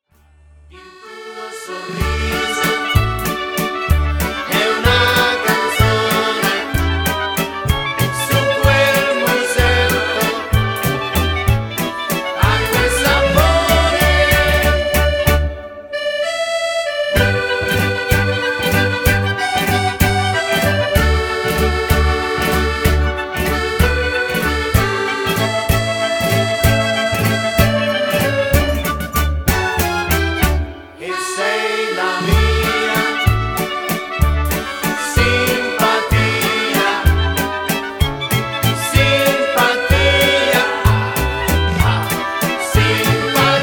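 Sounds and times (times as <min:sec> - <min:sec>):
sung waltz: 0:00.4 - 0:43.6.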